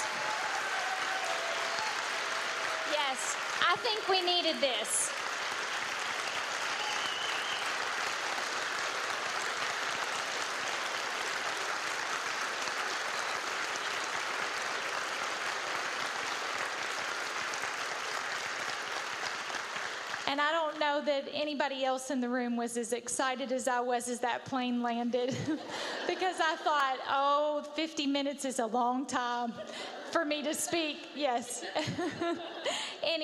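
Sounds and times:
audience applause: 0:00.0 - 0:20.3
speech: 0:03.1 - 0:05.2, 0:20.4 - 0:33.2
laughter: 0:25.3 - 0:27.0, 0:29.6 - 0:33.0.

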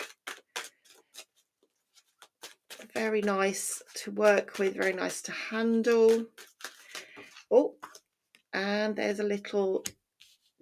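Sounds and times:
deck of cards being shuffled: 0:00.0 - 0:08.0
speech: 0:03.0 - 0:06.4, 0:07.5 - 0:07.8, 0:08.6 - 0:10.0.

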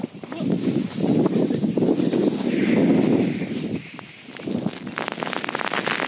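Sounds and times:
person speaking: 0:00.2 - 0:00.6
tiny bits of volcanic rock raining down: 0:00.5 - 0:06.0.

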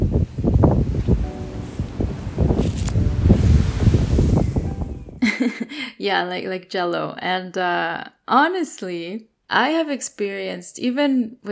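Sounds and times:
wind: 0:00.0 - 0:05.2
ocean surf: 0:01.2 - 0:04.9
speech: 0:06.0 - 0:11.5.

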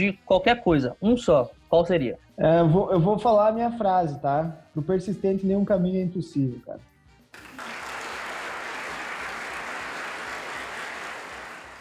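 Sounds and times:
speech: 0:00.0 - 0:07.5
applause added by the editor: 0:07.3 - 0:11.7.

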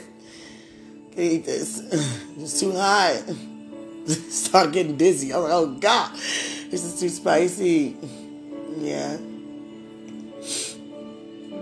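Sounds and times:
speech: 0:01.2 - 0:08.2, 0:08.8 - 0:09.3
person sniffing: 0:10.4 - 0:10.9.

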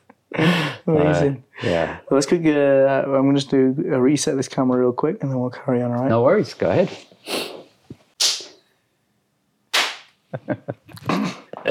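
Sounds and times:
speech: 0:00.4 - 0:07.5, 0:10.3 - 0:11.6
hand clap for camera sync: 0:08.2 - 0:08.6, 0:09.7 - 0:10.2.

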